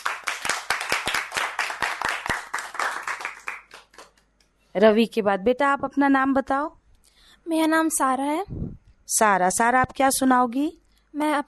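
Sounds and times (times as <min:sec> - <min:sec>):
group clapping hands: 0:00.0 - 0:04.3
speech: 0:04.8 - 0:06.8, 0:07.4 - 0:11.4.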